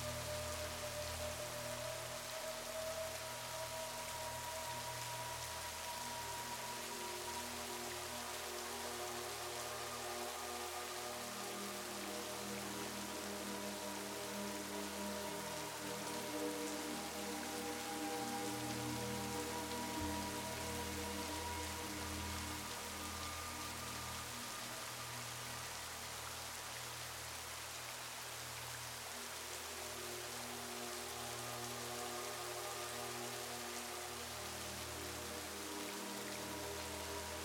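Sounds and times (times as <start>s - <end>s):
gentle relaxing music: 0.0s - 37.4s
soft steady rain: 0.0s - 37.4s.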